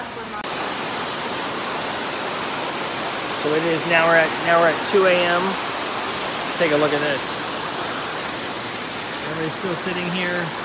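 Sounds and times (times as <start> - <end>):
rain at an open-air terminal: 0.0 - 10.6
speech: 3.4 - 5.6, 6.6 - 7.4, 9.4 - 10.6.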